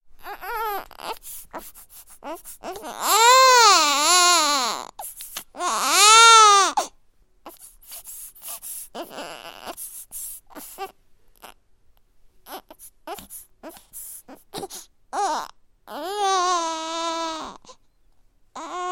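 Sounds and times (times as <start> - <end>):
newborn baby boy crying from stomach ache: 0.2 - 11.6, 12.4 - 17.9, 18.5 - 18.9.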